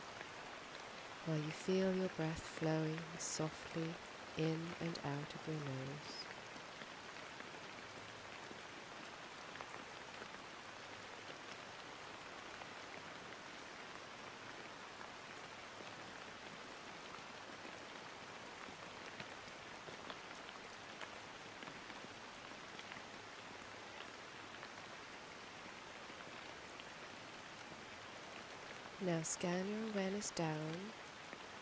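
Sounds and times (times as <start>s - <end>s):
rain falling: 0.0s - 31.5s
speech: 1.2s - 6.3s, 29.1s - 31.0s.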